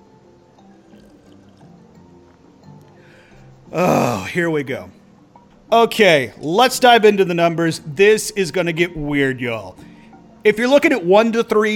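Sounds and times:
person sipping a drink: 0.9 - 1.7
speech: 3.7 - 5.0, 5.7 - 11.7.

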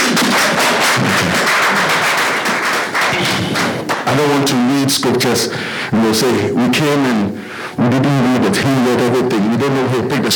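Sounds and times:
audience clapping: 0.0 - 4.5
speech: 4.1 - 10.3.

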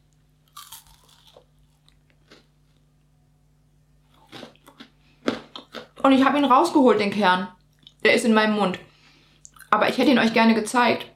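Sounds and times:
crunchy bites into a Raffaello coconut confection: 0.4 - 2.8, 4.1 - 6.0
speech: 6.0 - 8.9, 9.7 - 11.1.

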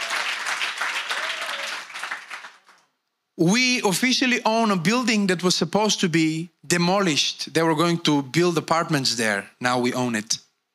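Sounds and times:
large crowd applause: 0.0 - 2.9
faint voice cheering: 1.0 - 1.9
speech: 3.4 - 10.5.

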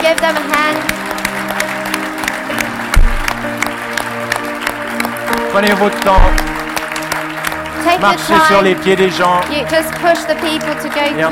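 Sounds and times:
speech: 0.0 - 1.4, 5.5 - 6.5, 7.8 - 11.3
audience clapping: 0.0 - 11.3
low thump: 3.0 - 3.4, 6.1 - 6.6.

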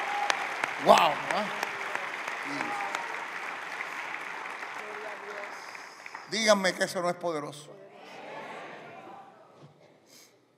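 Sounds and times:
applause: 0.0 - 7.4
speech: 0.8 - 1.6, 6.3 - 7.8.

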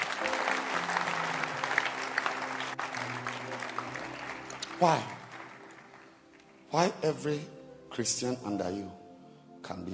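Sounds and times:
church congregation clapping after a sermon prompt: 0.0 - 7.0
speech: 4.8 - 5.2, 6.7 - 9.0, 9.7 - 9.9.

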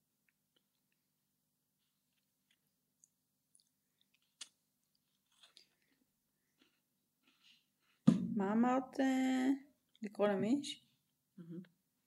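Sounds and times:
chewing while snacking: 1.8 - 8.0
speech: 8.4 - 10.8, 11.4 - 11.7.

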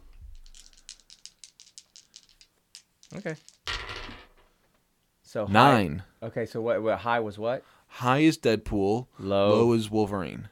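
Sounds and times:
multiple dice rolling: 0.0 - 4.6
speech: 3.1 - 3.6, 5.3 - 10.4.

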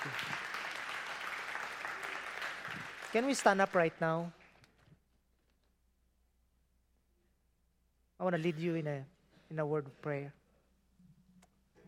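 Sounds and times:
audience round of applause: 0.0 - 4.0
speech: 3.1 - 4.4, 8.3 - 10.4.

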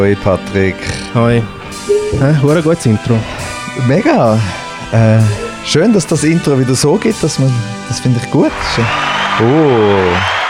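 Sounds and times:
speech: 0.0 - 10.4
applause: 8.5 - 10.4.

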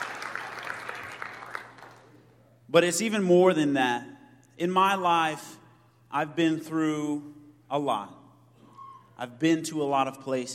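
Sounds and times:
church congregation applauding a minister: 0.0 - 2.2
speech: 2.7 - 8.2, 9.2 - 10.5.

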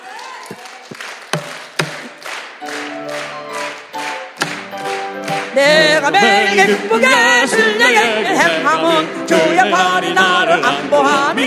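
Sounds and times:
audience clapping hands hard: 0.0 - 7.6
speech: 5.6 - 11.4.

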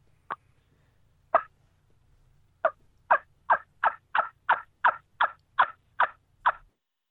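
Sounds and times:
soft hen turkey yelps blown on a wingbone call: 1.3 - 1.5, 2.6 - 6.7.

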